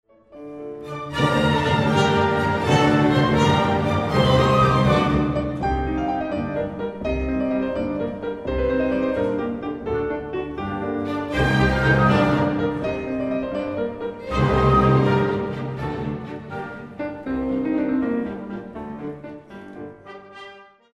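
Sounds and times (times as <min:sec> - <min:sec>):
lively classical music: 0:00.1 - 0:20.9.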